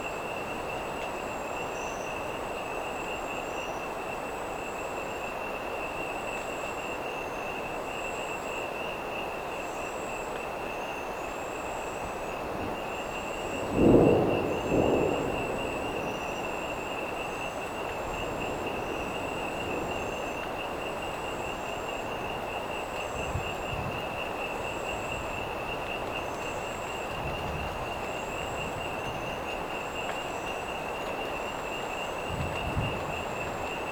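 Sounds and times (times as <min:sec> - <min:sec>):
crickets chirping: 0:00.0 - 0:33.9
frogs croaking: 0:00.0 - 0:33.9
storm approaching a marsh: 0:12.4 - 0:29.8.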